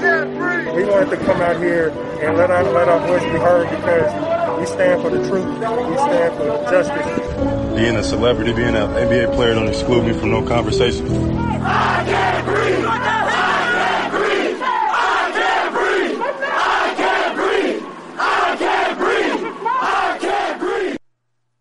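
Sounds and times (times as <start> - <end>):
speech: 0.8 - 13.1
large protest crowd chanting at a rally during nationwide protests: 11.3 - 21.0.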